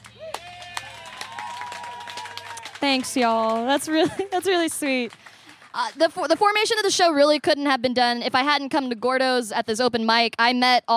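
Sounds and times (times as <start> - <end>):
audience applause: 0.0 - 6.4
speech: 2.8 - 10.9
laughter: 3.2 - 5.0.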